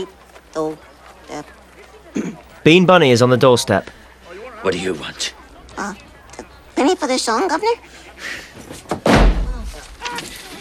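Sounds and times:
speech: 0:00.0 - 0:01.6, 0:02.6 - 0:04.0, 0:04.6 - 0:06.0, 0:06.8 - 0:08.7
door slamming: 0:08.9 - 0:10.3.

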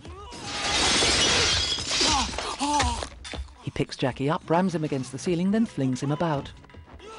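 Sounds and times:
glass partition window shattering: 0:00.3 - 0:03.4
tinkling glass pieces: 0:00.3 - 0:03.4
speech: 0:03.8 - 0:06.6.

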